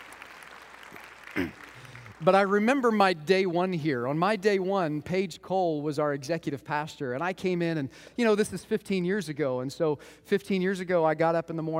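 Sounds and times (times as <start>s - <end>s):
audience clapping: 0.0s - 3.0s
speech: 2.2s - 11.7s.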